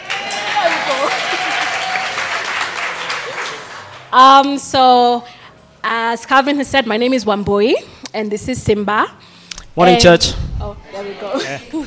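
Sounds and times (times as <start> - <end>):
delighted applause: 0.0 - 4.1
speech: 4.1 - 9.2, 9.8 - 11.8.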